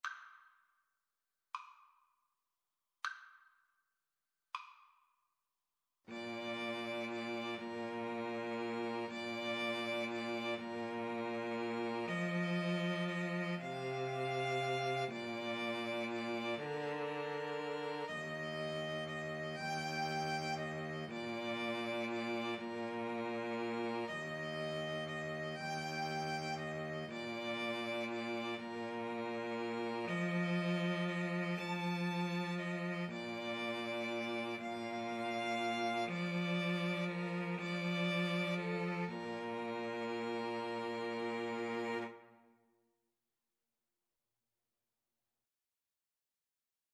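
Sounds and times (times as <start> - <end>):
cello: 6.1 - 42.4
violin: 6.1 - 42.4
flute: 12.0 - 40.4.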